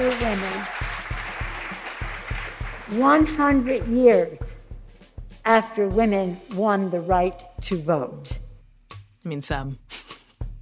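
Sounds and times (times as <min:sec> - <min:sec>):
audience applause: 0:00.0 - 0:03.5
speech: 0:00.2 - 0:00.8, 0:02.9 - 0:04.6, 0:05.5 - 0:08.4, 0:09.2 - 0:10.0.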